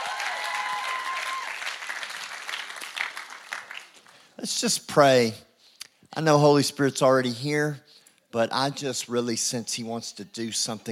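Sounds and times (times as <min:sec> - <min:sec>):
whistle or cheer: 0:00.0 - 0:01.6
audience applause: 0:00.0 - 0:04.2
speech: 0:04.4 - 0:05.4, 0:06.2 - 0:10.9.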